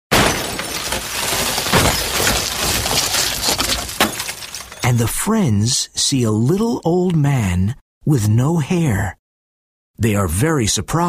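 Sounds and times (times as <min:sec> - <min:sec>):
large screen falling over and crashing: 0:00.1 - 0:04.9
speech: 0:04.9 - 0:09.2, 0:10.0 - 0:11.0.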